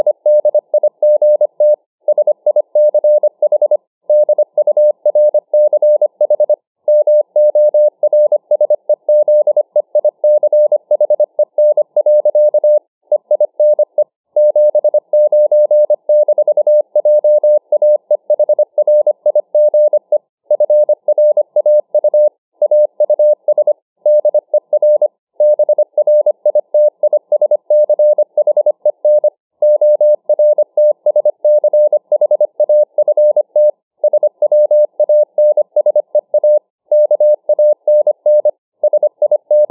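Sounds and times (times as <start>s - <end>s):
Morse code at 25 words per minute: 0.0s - 39.6s.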